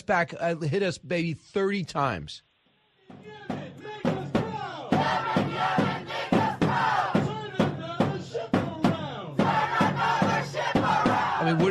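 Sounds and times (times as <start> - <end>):
speech: 0.0 - 2.5, 3.1 - 3.5
large crowd chanting in city street: 3.0 - 11.6.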